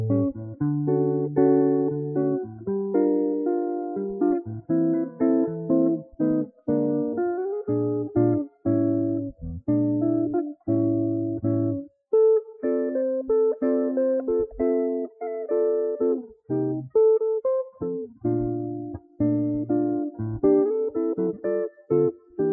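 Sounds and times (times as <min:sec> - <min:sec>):
jazz guitar solo: 0:00.0 - 0:22.5.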